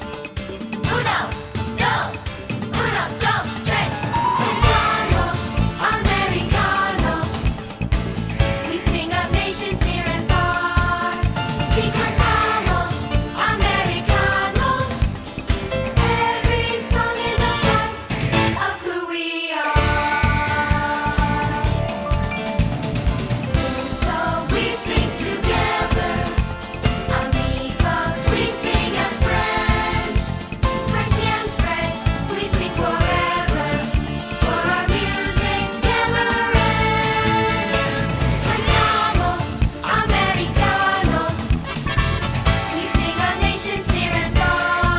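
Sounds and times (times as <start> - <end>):
vocal singing: 0.5 - 44.9.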